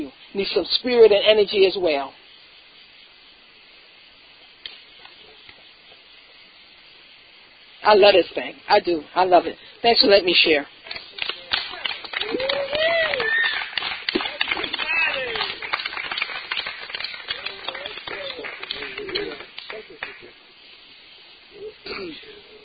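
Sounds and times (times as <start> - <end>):
speech: 0.1 - 2.2, 7.8 - 11.1
crowd clapping loudly: 10.8 - 20.4
scattered whoops and voices: 11.8 - 15.6.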